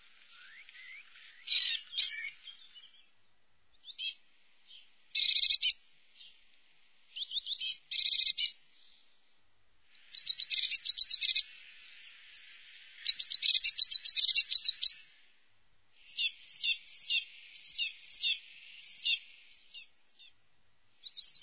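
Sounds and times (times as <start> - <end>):
Eurasian blue tit calling and singing: 0.4 - 3.0, 3.8 - 4.2, 5.2 - 5.8, 7.2 - 8.6, 10.0 - 12.4, 13.0 - 15.1, 16.0 - 20.3, 21.0 - 21.4.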